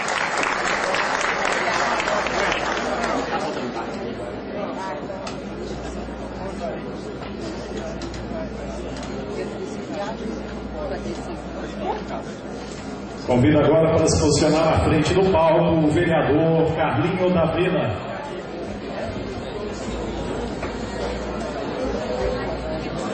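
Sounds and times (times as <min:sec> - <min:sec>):
crowd applauding: 0:00.0 - 0:03.7
murmured crowd chatter: 0:00.0 - 0:23.1
speech: 0:13.3 - 0:18.0.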